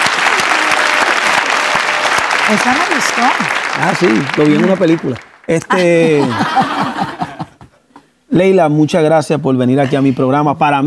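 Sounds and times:
studio applause: 0.0 - 7.5
speech: 2.5 - 7.3, 8.3 - 10.8
laughter: 5.7 - 7.8.

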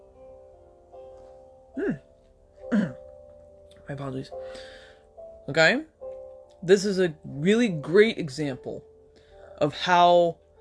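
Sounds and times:
speech: 1.8 - 2.1, 3.9 - 4.8, 5.5 - 5.9, 6.6 - 8.9, 9.6 - 10.4
hiccups: 1.8 - 3.0.

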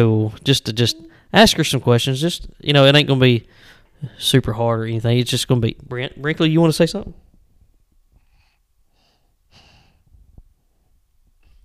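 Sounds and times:
speech: 0.0 - 7.2
heavy breathing: 3.4 - 4.2, 8.2 - 10.2.

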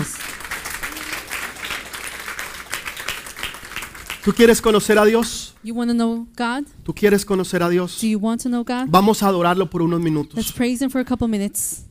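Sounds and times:
audience applause: 0.0 - 5.2
speech: 4.2 - 11.9.

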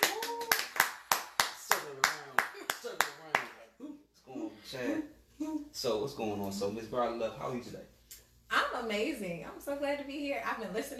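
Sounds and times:
round of applause: 0.0 - 3.6
speech: 4.7 - 8.0, 8.8 - 10.9.

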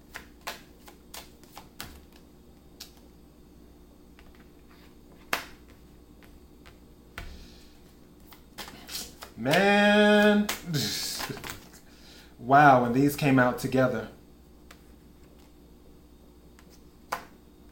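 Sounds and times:
tarot cards shuffled and drawn: 0.0 - 3.1, 5.2 - 7.3, 8.2 - 11.8, 16.6 - 17.4
speech: 9.4 - 9.9, 12.5 - 14.2.

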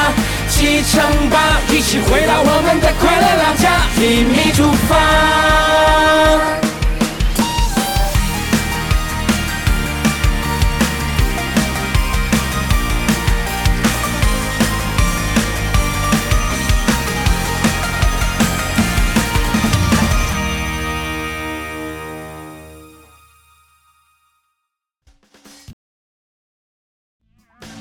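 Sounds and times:
upbeat pop theme song: 0.0 - 21.9
speech: 0.6 - 6.6.

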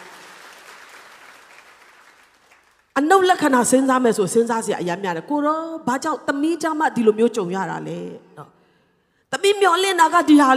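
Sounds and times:
congregation clapping hands in praise during a church service: 0.0 - 3.0
speech: 3.0 - 8.6, 9.4 - 10.5.

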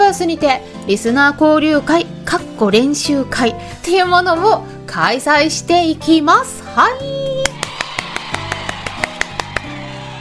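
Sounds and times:
speech: 0.1 - 7.4
soft hand clapping: 7.4 - 9.7.

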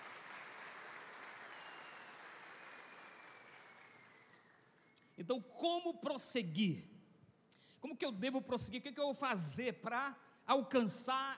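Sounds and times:
audience applause: 0.0 - 4.6
speech: 5.2 - 6.9, 7.8 - 11.3.

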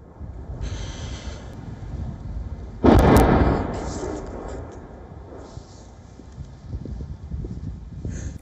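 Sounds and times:
steady noise: 0.0 - 8.4
artillery shelling boom in the Luhansk region: 2.8 - 5.9.

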